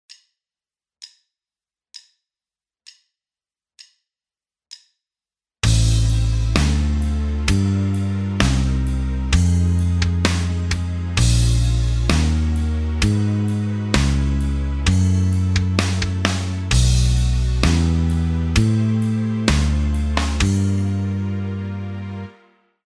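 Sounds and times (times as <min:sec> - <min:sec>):
guitar backing track: 0:05.6 - 0:22.2.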